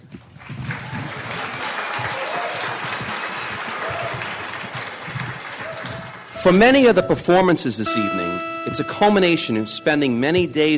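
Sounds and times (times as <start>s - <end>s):
audience applause: 0.5s - 6.4s
speech: 6.4s - 10.7s.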